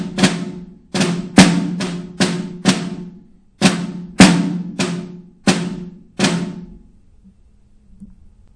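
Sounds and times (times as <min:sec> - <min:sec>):
snare drum rudiment: 0:00.0 - 0:06.8.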